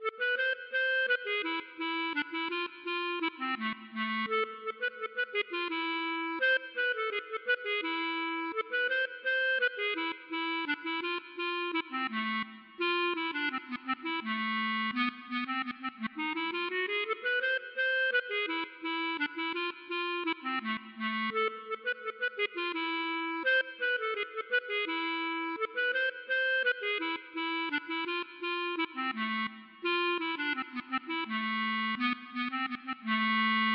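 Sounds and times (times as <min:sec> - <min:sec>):
mazurka: 0:00.0 - 0:33.7.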